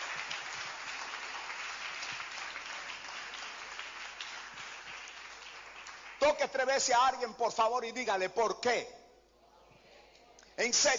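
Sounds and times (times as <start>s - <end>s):
audience applause: 0.0s - 6.3s
speech: 6.2s - 9.0s, 10.6s - 10.9s.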